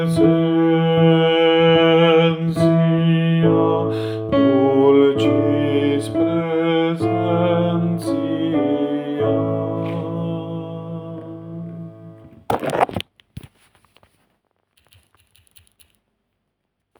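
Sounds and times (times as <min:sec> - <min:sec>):
alto voice singing: 0:00.0 - 0:12.4.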